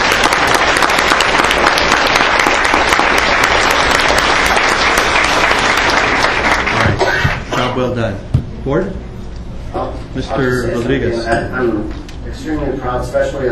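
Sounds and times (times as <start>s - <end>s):
crowd applause: 0.0s - 7.5s
speech: 7.8s - 13.5s.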